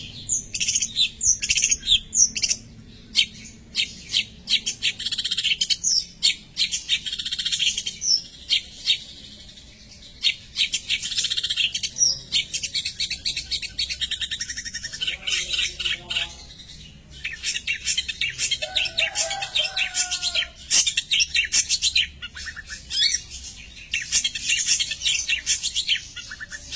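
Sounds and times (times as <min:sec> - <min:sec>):
long-tailed shrike chattering song: 0:00.0 - 0:26.7.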